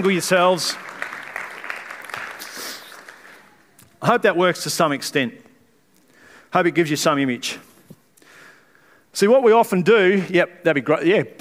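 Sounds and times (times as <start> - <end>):
speech: 0.0 - 0.9, 4.0 - 5.4, 6.5 - 7.7, 9.2 - 11.3
audience applause: 0.0 - 3.7.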